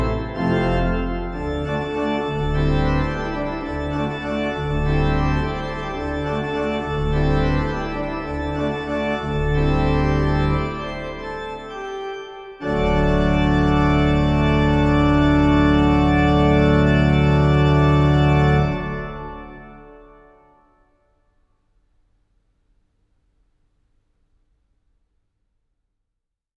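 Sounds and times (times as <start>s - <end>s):
short organ fanfare in D: 0.0s - 20.5s.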